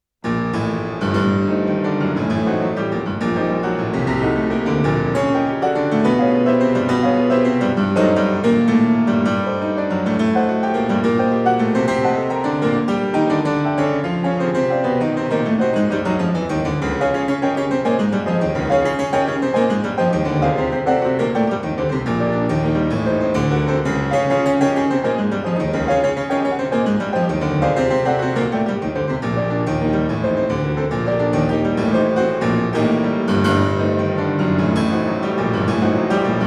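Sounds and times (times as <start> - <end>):
piano prelude in G minor: 0.2 - 36.4.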